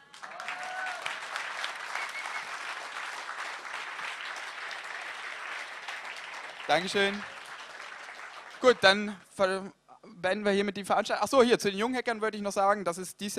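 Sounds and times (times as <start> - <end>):
audience applause: 0.0 - 9.0
speech: 6.7 - 7.3, 8.6 - 13.3.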